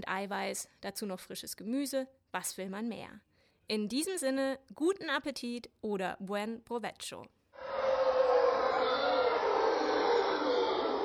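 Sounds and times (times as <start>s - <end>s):
speech: 0.0s - 7.4s
howler monkeys calling: 7.6s - 11.0s.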